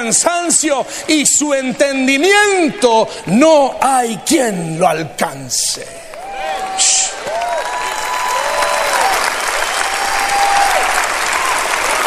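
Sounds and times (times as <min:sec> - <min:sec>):
speech: 0:00.0 - 0:06.2
audience applauding: 0:06.1 - 0:12.0.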